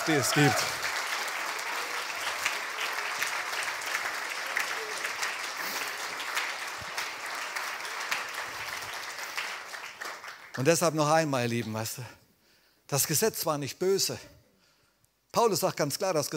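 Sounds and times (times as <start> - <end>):
speech: 0.0 - 0.8, 10.6 - 12.2, 12.9 - 14.4, 15.4 - 16.3
audience applause: 0.0 - 10.8.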